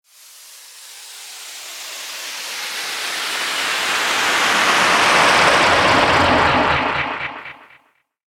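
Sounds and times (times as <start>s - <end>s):
UFO spacecraft sound effects: 0.2s - 7.8s.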